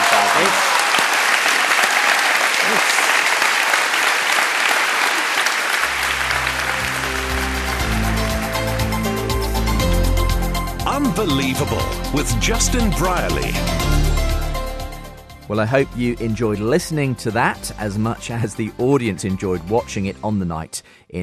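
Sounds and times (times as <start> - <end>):
audience applause: 0.0 - 13.4
speech: 0.4 - 0.6, 11.2 - 14.1, 15.5 - 21.2.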